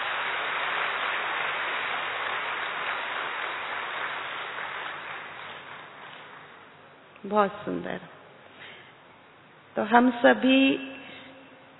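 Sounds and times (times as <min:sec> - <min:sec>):
audience clapping: 0:00.0 - 0:06.8
speech: 0:07.2 - 0:08.2, 0:09.8 - 0:10.9.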